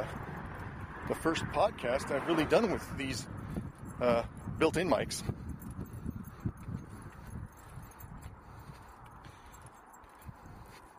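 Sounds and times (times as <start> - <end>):
speech: 1.1 - 5.4
phone jangling against a tin of Altoids mints: 3.2 - 4.8, 5.4 - 10.5.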